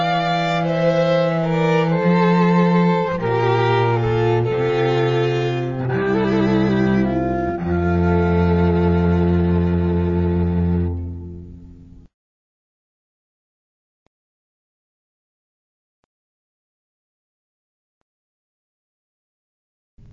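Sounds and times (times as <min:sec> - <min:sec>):
orchestral air: 0:00.0 - 0:12.1.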